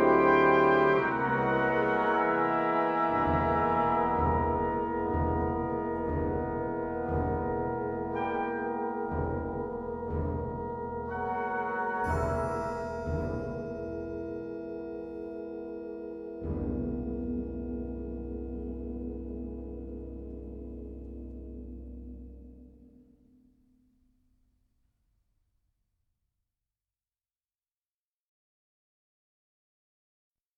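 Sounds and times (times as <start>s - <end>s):
folk tunes from Hardanger: 0.0s - 22.2s.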